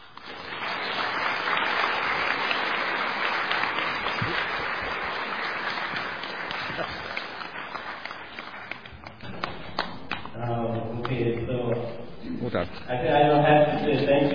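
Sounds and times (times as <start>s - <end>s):
audience applause: 0.0s - 10.3s
man speaking: 10.4s - 14.3s.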